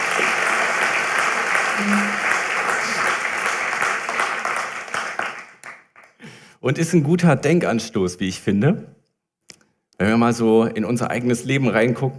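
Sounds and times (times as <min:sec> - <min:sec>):
audience applause: 0:00.0 - 0:06.2
speech: 0:01.8 - 0:02.2, 0:06.6 - 0:09.0, 0:10.0 - 0:12.1.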